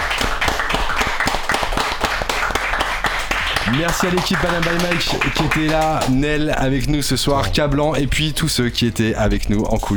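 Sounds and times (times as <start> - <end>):
applause: 0.0 - 6.2
speech: 3.7 - 9.9.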